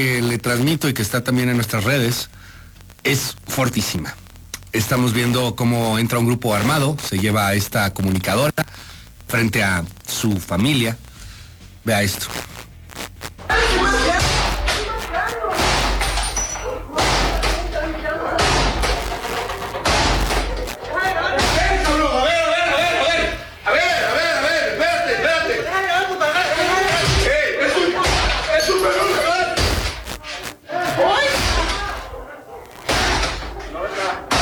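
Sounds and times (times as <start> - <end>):
speech: 0.0 - 11.0, 11.8 - 12.5
raised voices: 13.4 - 34.4
door being forced and broken in: 13.5 - 22.1, 32.8 - 33.7, 34.3 - 34.4.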